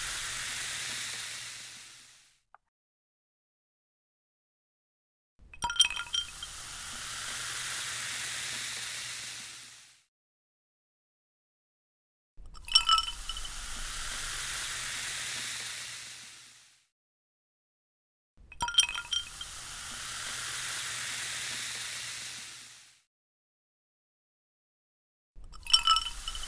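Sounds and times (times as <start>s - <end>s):
carbonated drink fizzing: 0.0s - 2.2s, 5.5s - 10.0s, 12.4s - 16.8s, 18.6s - 23.0s, 25.4s - 26.4s.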